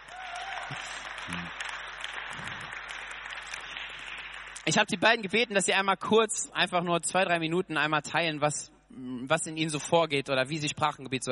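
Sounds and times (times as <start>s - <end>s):
audience applause: 0.0s - 5.2s
speech: 0.7s - 1.7s, 2.3s - 2.8s, 4.7s - 11.3s.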